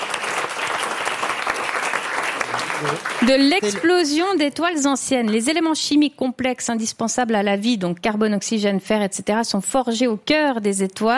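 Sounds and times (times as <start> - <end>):
audience applause: 0.0 - 4.2
speech: 2.8 - 11.1.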